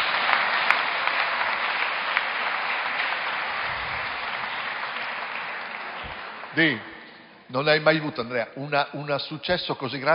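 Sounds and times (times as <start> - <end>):
audience applause: 0.0 - 7.3
speech: 6.6 - 6.9, 7.5 - 10.1.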